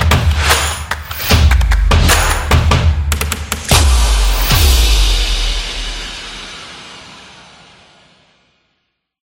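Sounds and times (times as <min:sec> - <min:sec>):
upbeat stomping music: 0:00.0 - 0:06.5.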